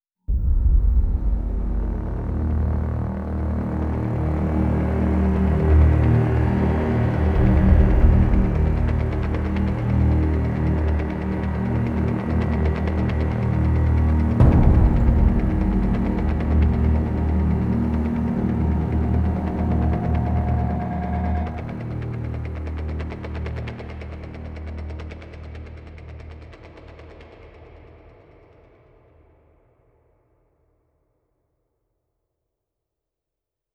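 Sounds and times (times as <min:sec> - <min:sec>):
tense stealth music: 0:00.3 - 0:25.6.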